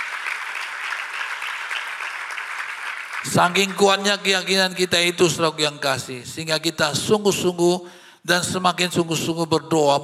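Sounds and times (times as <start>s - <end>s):
audience applauding: 0.0s - 4.3s
speech: 3.2s - 10.0s.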